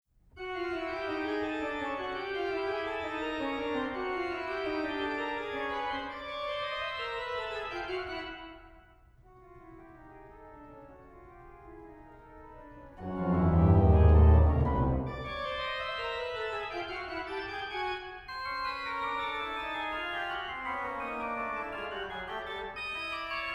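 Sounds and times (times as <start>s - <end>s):
organ: 0.4s - 8.7s, 10.3s - 23.5s.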